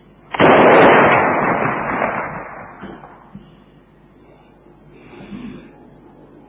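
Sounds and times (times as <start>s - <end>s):
signal cannon firing: 0.3s - 3.4s.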